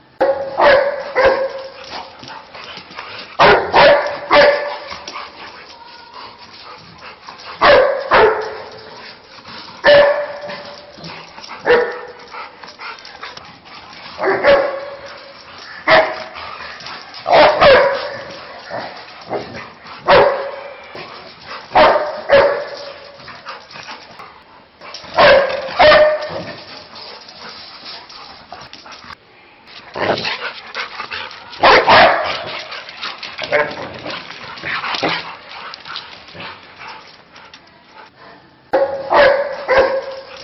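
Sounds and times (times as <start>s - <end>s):
dog barking at a cat: 0.2s - 1.8s, 3.4s - 4.9s, 7.6s - 8.9s, 9.8s - 10.8s, 11.6s - 12.2s, 14.2s - 15.1s, 15.9s - 16.4s, 17.2s - 19.0s, 20.0s - 20.8s, 21.7s - 23.0s, 25.2s - 26.6s, 31.6s - 32.4s, 38.7s - 40.3s.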